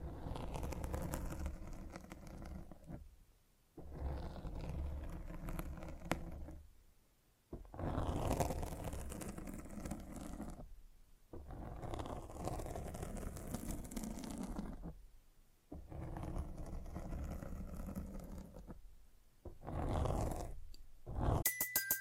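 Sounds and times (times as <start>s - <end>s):
microphone scratching: 0.0s - 3.0s, 3.8s - 6.6s, 7.6s - 10.7s, 11.4s - 15.0s, 15.7s - 18.8s, 19.5s - 21.4s.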